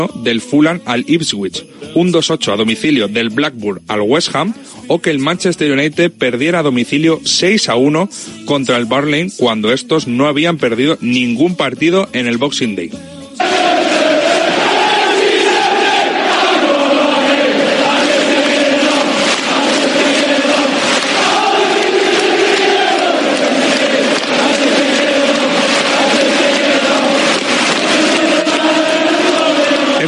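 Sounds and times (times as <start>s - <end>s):
speech: 0.0s - 13.2s
large football stadium crowd chanting in unison: 13.4s - 30.0s.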